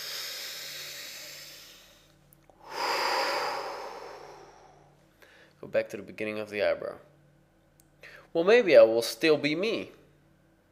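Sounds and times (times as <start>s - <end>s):
deep breathing: 0.0s - 5.6s
speech: 5.6s - 7.1s, 8.4s - 10.0s.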